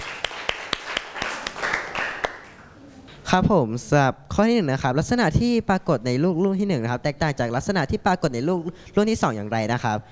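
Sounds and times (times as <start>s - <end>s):
classroom clapping: 0.0s - 2.8s
speech: 3.3s - 10.1s.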